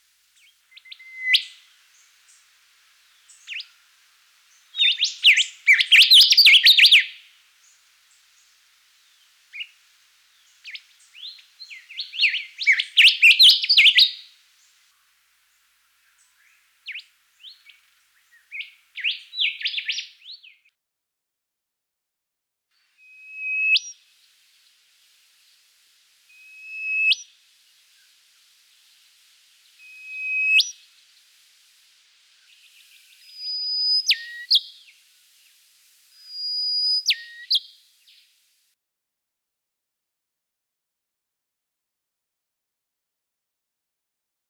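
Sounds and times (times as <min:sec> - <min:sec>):
rufous whistler singing: 0:00.4 - 0:01.7, 0:04.7 - 0:07.3, 0:10.4 - 0:14.4, 0:16.1 - 0:20.6, 0:23.0 - 0:24.1, 0:26.3 - 0:28.2, 0:29.6 - 0:31.3, 0:32.4 - 0:35.1, 0:36.1 - 0:38.3.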